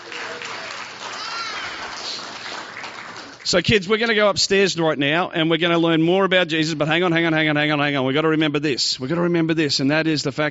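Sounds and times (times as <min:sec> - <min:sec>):
audience applause for child helpers: 0:00.0 - 0:03.6
speech: 0:03.5 - 0:10.5.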